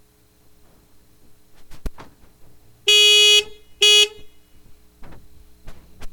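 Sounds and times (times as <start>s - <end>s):
car horn: 2.9s - 4.6s.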